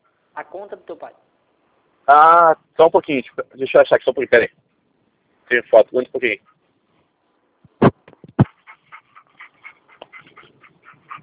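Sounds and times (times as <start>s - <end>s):
speech: 0.4s - 1.4s, 2.1s - 4.6s, 5.5s - 6.5s
cattle dogs barking: 8.4s - 11.2s.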